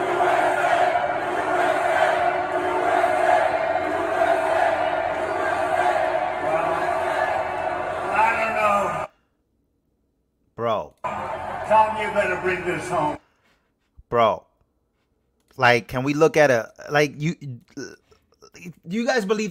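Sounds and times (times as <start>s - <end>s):
political rally crowd cheering and shouting: 0.0s - 9.1s, 11.0s - 13.2s
speech: 12.0s - 13.2s, 14.1s - 14.4s, 15.6s - 17.8s, 18.6s - 19.4s.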